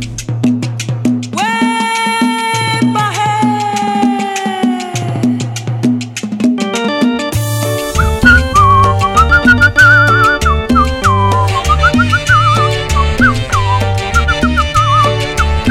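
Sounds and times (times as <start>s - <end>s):
lively band with bouncing bass line and percussion: 0.0s - 15.6s
person whistling a high melody: 7.9s - 15.6s.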